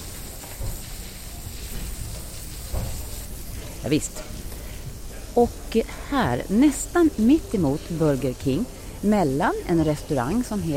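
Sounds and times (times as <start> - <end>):
man hosing down the street with water: 0.0 - 10.7
speech: 3.8 - 4.4, 5.4 - 10.7.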